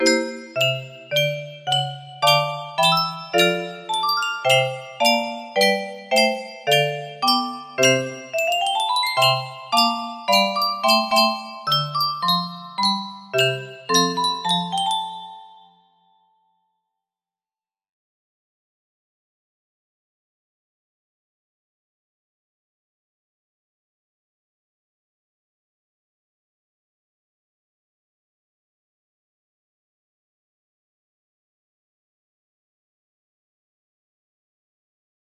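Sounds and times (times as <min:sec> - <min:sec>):
music box melody: 0:00.0 - 0:16.2.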